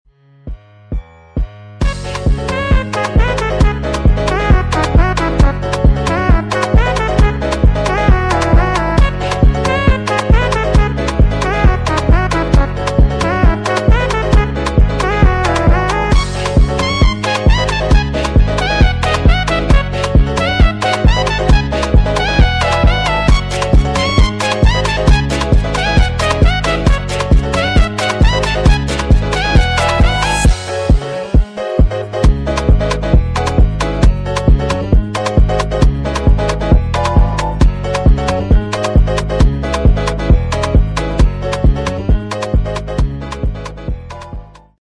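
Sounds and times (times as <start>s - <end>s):
beat loop: 1.8s - 44.7s.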